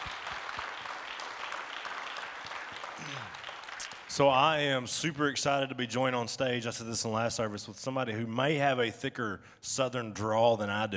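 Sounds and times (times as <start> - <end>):
audience applause: 0.0 - 4.6
speech: 4.1 - 10.9.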